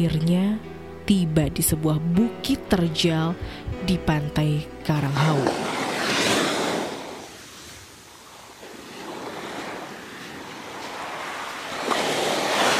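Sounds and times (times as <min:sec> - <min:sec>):
speech: 0:00.0 - 0:05.8
powerful ocean waves crashing and surging: 0:05.1 - 0:12.7.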